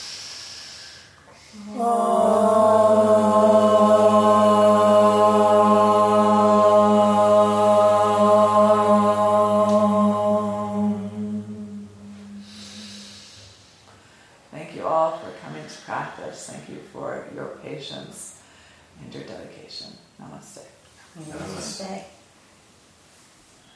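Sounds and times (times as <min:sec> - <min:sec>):
group chanting at the close of a yoga practice: 0:01.3 - 0:13.8, 0:21.2 - 0:21.8
speech: 0:01.5 - 0:02.2.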